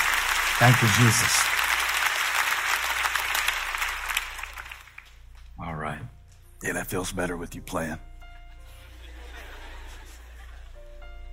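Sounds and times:
audience clapping: 0.0s - 5.6s
speech: 0.6s - 1.6s, 6.6s - 8.1s
laughter: 8.6s - 11.0s.

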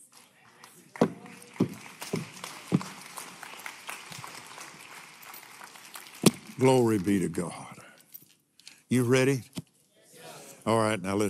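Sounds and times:
footsteps going upstairs during a sermon: 1.0s - 3.0s
speech: 6.6s - 7.7s, 8.9s - 9.5s, 10.6s - 11.2s.

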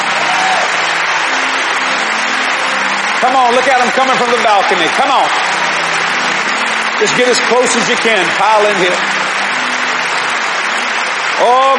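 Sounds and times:
audience hand clapping: 0.0s - 11.7s
speech: 3.2s - 5.4s, 7.0s - 9.2s, 11.4s - 11.7s.

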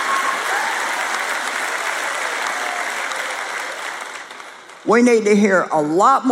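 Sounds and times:
audience applause: 0.0s - 4.9s
speech: 4.9s - 6.3s.

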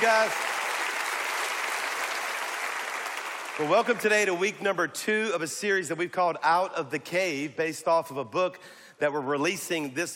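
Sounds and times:
speech: 0.0s - 0.5s, 3.6s - 10.1s
church congregation applauding: 0.0s - 4.6s.

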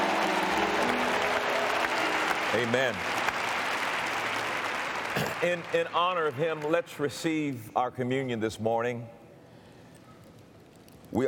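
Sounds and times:
church congregation clapping in praise during a Christmas service: 0.0s - 7.4s
speech: 2.5s - 3.1s, 5.4s - 9.2s.

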